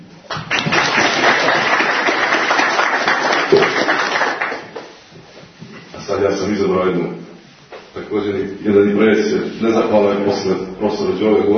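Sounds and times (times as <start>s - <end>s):
audience clapping at a literary gathering honoring a poet: 0.2s - 5.0s
speech: 6.2s - 7.3s, 8.0s - 11.5s.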